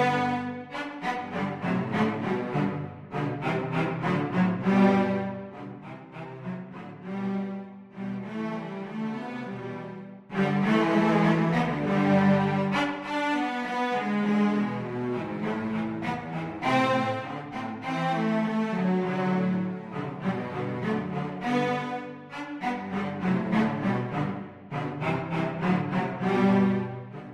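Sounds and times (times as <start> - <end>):
cello trio playing: 0.0 - 27.3.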